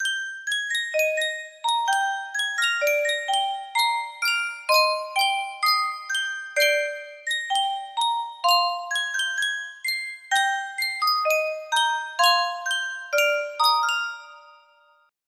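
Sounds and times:
Sankyo music box: 0:00.0 - 0:15.1.

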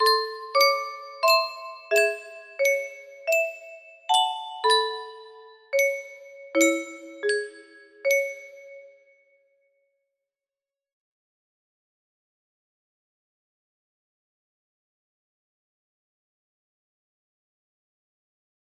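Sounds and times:
melody: 0:00.0 - 0:09.0.

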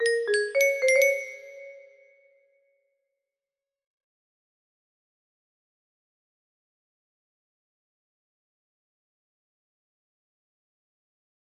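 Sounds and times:
melody: 0:00.0 - 0:02.1.

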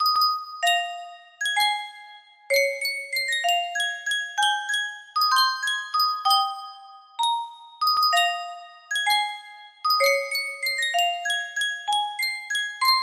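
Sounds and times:
Sankyo custom tune music box: 0:00.0 - 0:13.0.

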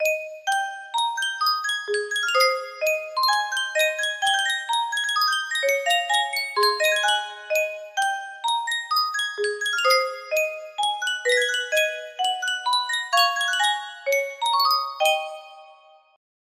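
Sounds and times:
music box: 0:00.0 - 0:16.2.

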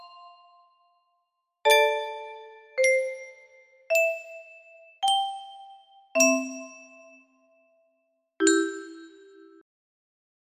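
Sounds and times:
music box melody: 0:01.7 - 0:07.3, 0:08.4 - 0:09.4.

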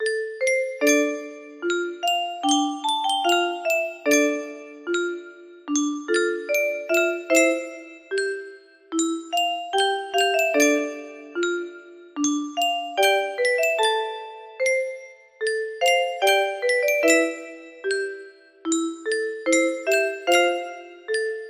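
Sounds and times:
music box melody: 0:00.0 - 0:21.4.

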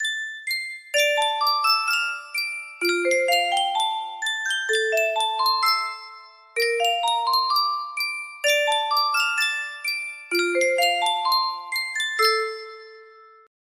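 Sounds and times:
Sankyo custom tune music box: 0:00.0 - 0:13.5.

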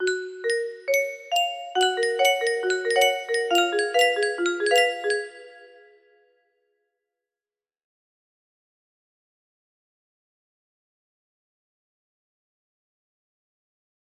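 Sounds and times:
music box cover: 0:00.0 - 0:06.0.

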